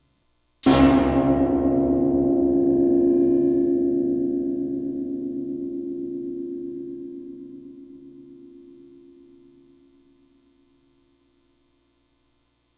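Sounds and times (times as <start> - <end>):
spring reverb tank: 0.6 - 8.8.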